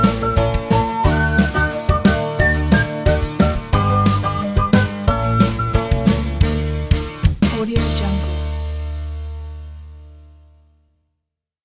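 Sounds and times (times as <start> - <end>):
funny acoustic cartoon animation music: 0.0 - 8.7.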